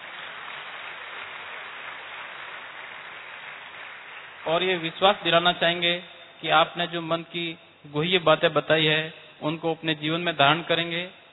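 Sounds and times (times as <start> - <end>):
audience applause: 0.0 - 4.9
speech: 4.4 - 11.2.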